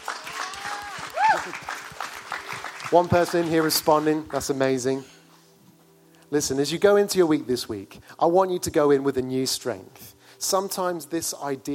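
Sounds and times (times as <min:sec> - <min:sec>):
audience clapping: 0:00.0 - 0:04.6
speech: 0:01.4 - 0:01.8, 0:02.9 - 0:05.2, 0:06.3 - 0:11.7.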